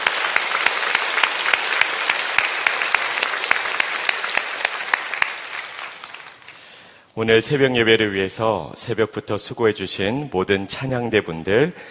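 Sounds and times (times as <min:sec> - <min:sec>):
audience applause: 0:00.0 - 0:06.8
speech: 0:07.2 - 0:11.9.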